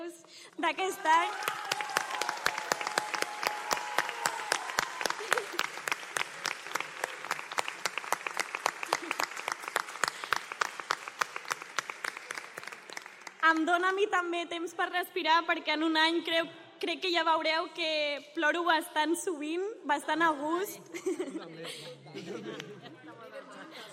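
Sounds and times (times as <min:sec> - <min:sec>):
speech: 0:00.4 - 0:01.7, 0:13.5 - 0:22.8
audience applauding: 0:00.6 - 0:13.5
laughter: 0:05.1 - 0:07.1, 0:08.7 - 0:09.5, 0:20.9 - 0:23.9.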